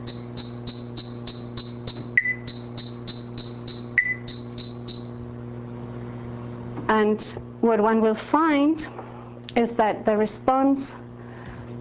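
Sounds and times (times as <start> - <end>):
short high beeps: 0.0 - 5.2
speech: 7.0 - 11.0.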